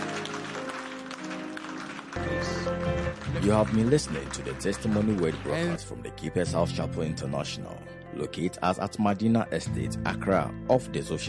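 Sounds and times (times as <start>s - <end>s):
audience clapping: 0.0s - 6.0s
speech: 3.4s - 11.2s.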